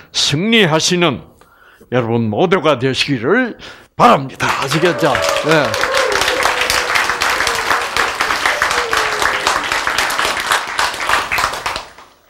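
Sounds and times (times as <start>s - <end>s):
speech: 0.3s - 1.3s, 1.9s - 5.8s
audience applause: 4.4s - 12.2s.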